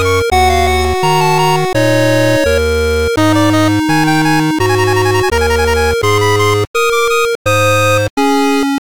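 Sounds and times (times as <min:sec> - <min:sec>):
8-bit chiptune music: 0:00.0 - 0:08.8.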